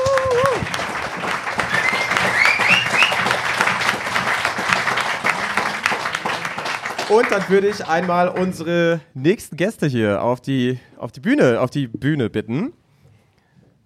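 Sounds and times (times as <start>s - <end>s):
audience applause: 0.0s - 8.6s
speech: 7.1s - 12.8s.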